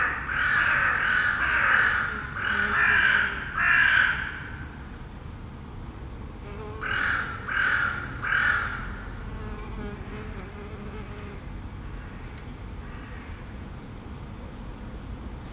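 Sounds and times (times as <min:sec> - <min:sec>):
crow cawing: 0:00.0 - 0:04.6, 0:06.8 - 0:09.1.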